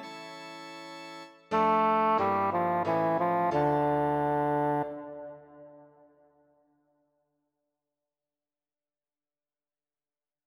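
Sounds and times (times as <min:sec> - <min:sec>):
aria with chorus accompaniment without the choir voices: 0:00.0 - 0:05.9.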